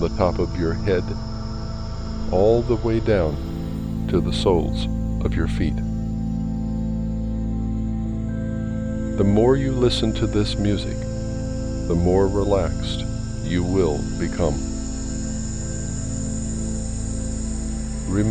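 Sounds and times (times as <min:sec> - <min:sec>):
relaxation music: 0:00.0 - 0:18.3
voice guidance: 0:02.3 - 0:03.4, 0:04.1 - 0:05.9, 0:09.2 - 0:11.0, 0:11.9 - 0:14.7, 0:18.1 - 0:18.3.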